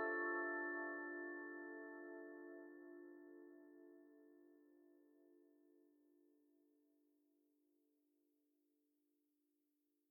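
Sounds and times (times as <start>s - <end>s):
soft harp playing: 0.0s - 2.7s.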